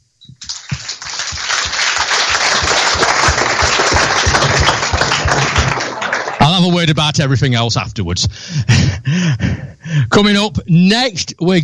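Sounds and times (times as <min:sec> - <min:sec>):
audience applause: 0:00.4 - 0:06.8
laughter: 0:00.6 - 0:06.7
speech: 0:06.6 - 0:11.6.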